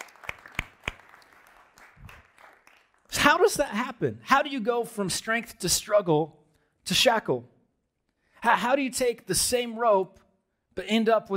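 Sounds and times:
audience clapping: 0.0 - 3.5
speech: 3.3 - 7.5, 8.4 - 10.2, 10.8 - 11.3.

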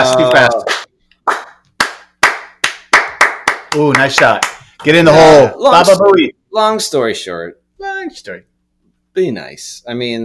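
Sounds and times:
speech: 0.1 - 0.7, 3.7 - 8.5, 9.2 - 10.2
golf clap: 0.7 - 4.6.

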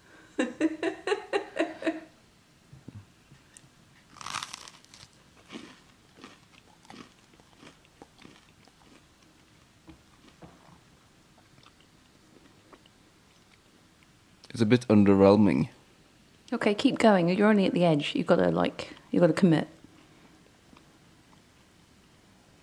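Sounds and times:
speech: 0.4 - 0.9, 14.6 - 15.8, 16.5 - 19.8
soft chewing: 3.3 - 14.6
biting into bread spread with a thin layer of Marmite: 4.1 - 9.3.

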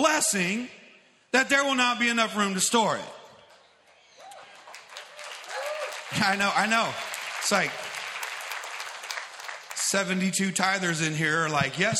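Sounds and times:
man speaking loudly: 0.0 - 3.2, 6.1 - 7.8, 9.8 - 11.9
speech: 0.1 - 3.2, 6.1 - 7.9, 9.9 - 11.9
audience clapping: 3.8 - 10.6.

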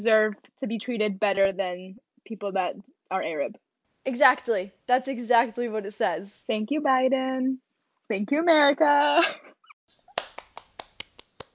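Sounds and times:
speech: 0.0 - 9.5
clapping: 10.1 - 11.5.

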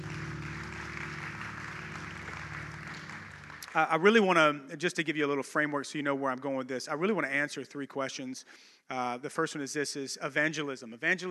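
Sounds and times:
low humming tones: 0.0 - 3.7
audience clapping hands: 0.0 - 4.4
speech: 3.8 - 11.2.

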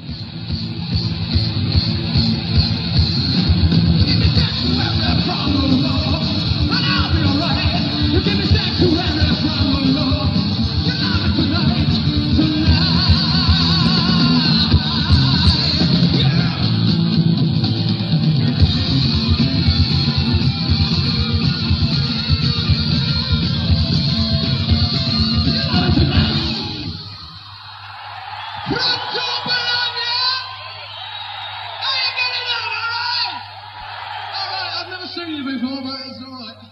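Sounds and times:
live rock music: 0.0 - 27.4
crowd roaring and cheering: 0.0 - 35.6.

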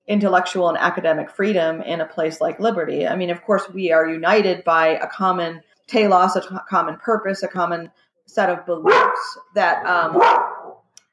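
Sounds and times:
speech: 0.1 - 10.5
dog barking: 8.8 - 9.4, 10.1 - 10.8.

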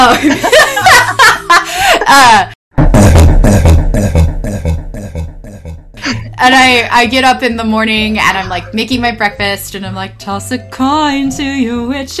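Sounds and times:
speech: 0.0 - 0.6, 6.4 - 12.1
laughter: 0.0 - 2.2
person burping after drinking kombucha: 2.8 - 6.4.

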